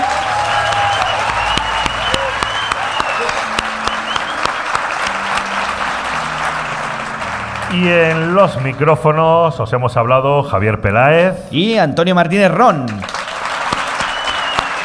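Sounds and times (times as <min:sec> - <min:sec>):
crowd applause: 0:00.0 - 0:09.4, 0:13.0 - 0:14.8
low tonal hum: 0:00.0 - 0:09.7
speech: 0:07.8 - 0:13.1.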